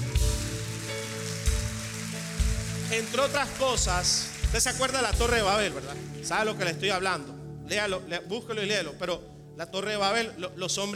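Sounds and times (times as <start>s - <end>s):
audience applause: 0.0s - 6.3s
speech: 2.9s - 10.9s.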